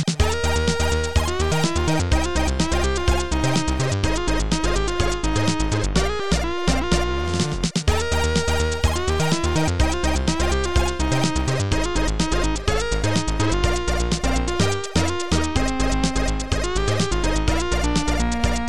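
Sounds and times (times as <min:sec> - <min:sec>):
musical scales: 0:00.2 - 0:18.6.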